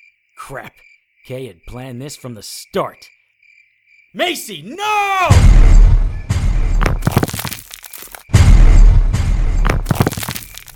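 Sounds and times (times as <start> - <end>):
speech: 0.5 - 3.2, 4.1 - 5.7
detonated bomb explosion blast: 5.3 - 7.4, 8.3 - 10.2.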